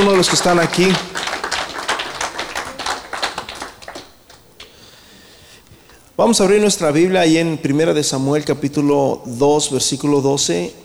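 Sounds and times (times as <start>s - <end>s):
audience applause: 0.0s - 5.6s
speech: 0.2s - 1.2s, 6.2s - 10.8s.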